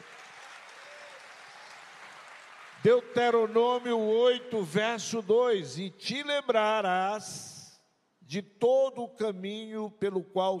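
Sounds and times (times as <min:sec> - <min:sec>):
audience applause: 0:00.0 - 0:04.2
speech: 0:02.8 - 0:07.5, 0:08.3 - 0:10.5.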